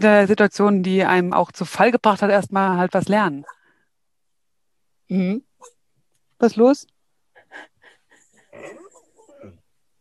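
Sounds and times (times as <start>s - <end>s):
speech: 0.0s - 3.6s, 5.1s - 5.8s, 6.4s - 7.7s
dog whimpering: 8.4s - 9.6s.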